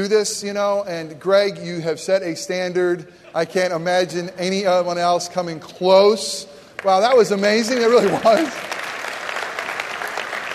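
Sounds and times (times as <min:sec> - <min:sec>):
speech: 0:00.0 - 0:08.8
audience applause: 0:07.6 - 0:10.5.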